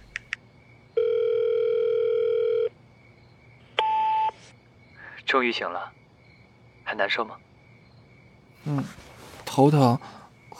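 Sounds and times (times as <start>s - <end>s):
phone call ringing tone: 1.0s - 2.7s
speech: 5.3s - 6.0s, 6.9s - 7.5s, 8.6s - 10.2s.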